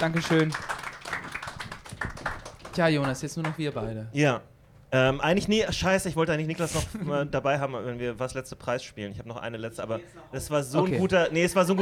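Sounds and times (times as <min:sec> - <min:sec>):
speech: 0:00.0 - 0:00.8, 0:02.8 - 0:11.7
live audience applause: 0:00.0 - 0:03.8.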